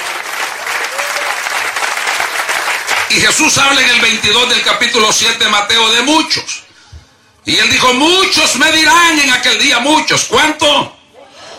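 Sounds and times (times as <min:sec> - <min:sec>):
audience applause: 0:00.0 - 0:03.5
speech: 0:03.1 - 0:06.6, 0:07.5 - 0:11.0.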